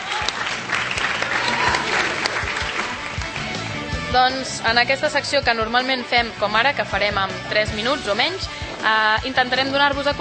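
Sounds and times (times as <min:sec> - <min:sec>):
audience applause: 0:00.0 - 0:04.0
speech: 0:04.1 - 0:10.2.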